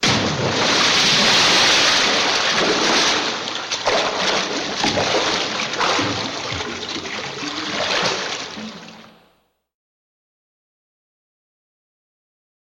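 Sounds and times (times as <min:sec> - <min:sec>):
water drips: 0:00.6 - 0:09.3.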